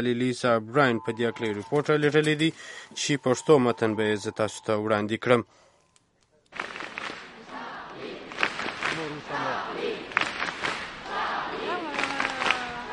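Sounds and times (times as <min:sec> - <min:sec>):
speech: 0:00.0 - 0:05.6, 0:06.5 - 0:06.8
dense crowd voices and shouts in Place de la République, Paris: 0:07.2 - 0:12.9.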